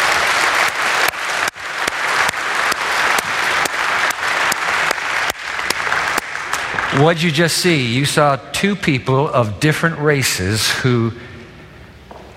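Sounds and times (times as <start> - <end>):
audience applause: 0.0 - 7.4
speech: 7.0 - 11.3.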